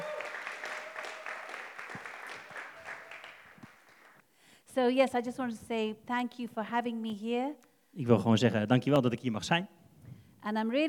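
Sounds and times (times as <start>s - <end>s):
audience applause: 0.0s - 4.2s
speech: 4.8s - 9.8s, 10.4s - 10.8s.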